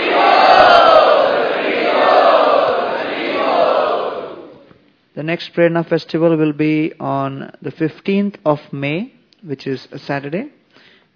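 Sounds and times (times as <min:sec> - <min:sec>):
audience chanting loudly in unison to welcome guests: 0:00.0 - 0:04.7
speech: 0:05.3 - 0:10.6.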